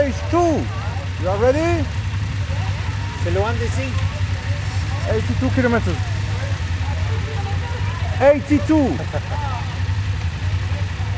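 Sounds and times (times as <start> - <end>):
speech: 0.0 - 2.0, 3.2 - 4.2, 5.0 - 6.1, 8.2 - 9.7
group of BMW motorcycle engines idling: 0.0 - 11.1
laughter: 0.0 - 11.1.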